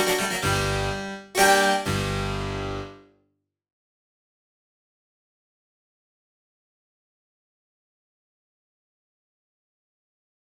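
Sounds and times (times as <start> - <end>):
harpsichord: 0.0 - 3.0.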